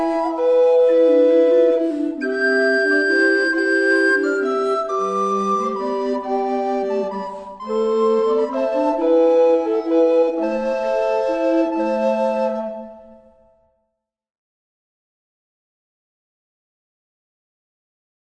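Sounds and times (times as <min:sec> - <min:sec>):
flute ensemble playing an English folk tune: 0:00.0 - 0:13.6.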